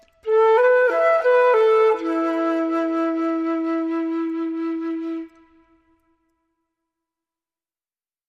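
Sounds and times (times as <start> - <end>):
flute: 0.0 - 6.5.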